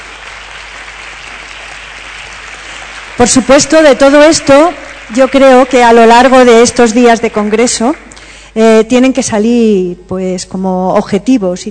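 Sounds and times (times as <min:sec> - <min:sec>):
applause: 0:00.0 - 0:08.4
speech: 0:03.2 - 0:11.6.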